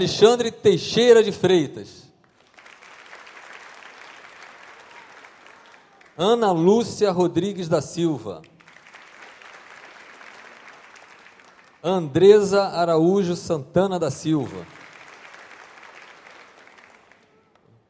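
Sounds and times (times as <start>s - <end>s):
speech: 0.0s - 2.0s, 6.2s - 8.5s, 11.8s - 14.8s
crowd applause: 2.3s - 6.7s, 8.4s - 12.0s, 14.2s - 17.7s.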